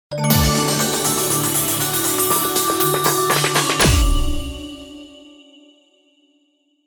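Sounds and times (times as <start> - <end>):
Christmas theme ident: 0.1 - 5.5.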